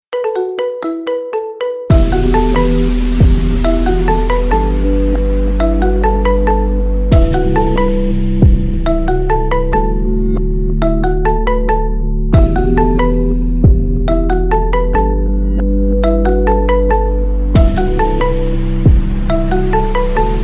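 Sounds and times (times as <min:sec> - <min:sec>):
marimba remix: 0:00.1 - 0:20.4.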